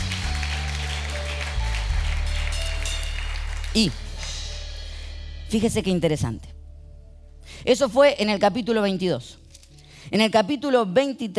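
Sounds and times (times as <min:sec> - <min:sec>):
crowd clapping: 0:00.0 - 0:05.1
speech: 0:03.7 - 0:04.0, 0:05.5 - 0:06.5, 0:07.6 - 0:09.4, 0:10.0 - 0:11.3.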